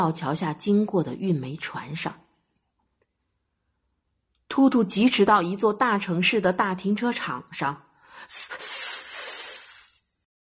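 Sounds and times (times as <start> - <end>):
speech: 0.0 - 2.2, 4.6 - 8.7
express train air brakes hissing: 8.3 - 10.0.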